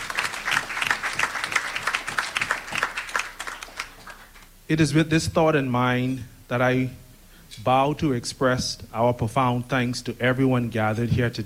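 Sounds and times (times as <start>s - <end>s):
audience applause: 0.0s - 4.4s
speech: 4.7s - 7.0s, 7.6s - 11.4s.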